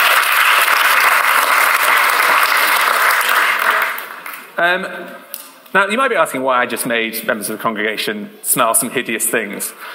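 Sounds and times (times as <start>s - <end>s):
round of applause: 0.0s - 4.6s
speech: 4.6s - 9.9s.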